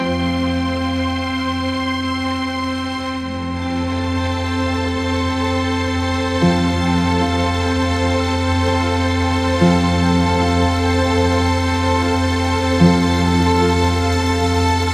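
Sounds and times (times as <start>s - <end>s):
epic elegance cinematic overture music: 0.0s - 14.9s.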